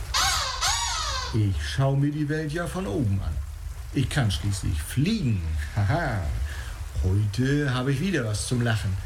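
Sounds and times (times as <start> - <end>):
black-headed gull calls: 0.1 - 1.5
speech: 1.3 - 9.0.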